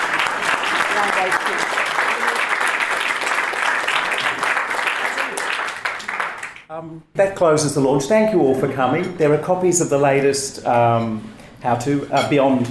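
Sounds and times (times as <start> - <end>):
crowd applause: 0.0 - 6.6
speech: 1.0 - 1.8, 6.8 - 12.7.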